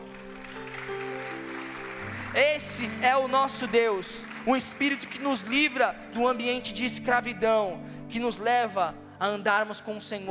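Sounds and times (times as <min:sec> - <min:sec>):
audience applauding: 0:00.0 - 0:06.2
sustained keyboard chords: 0:00.0 - 0:10.2
speech: 0:02.3 - 0:10.2.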